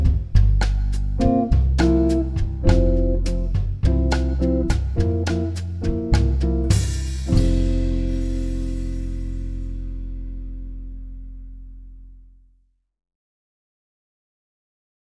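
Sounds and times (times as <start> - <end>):
bossa nova music: 0.0 - 10.9.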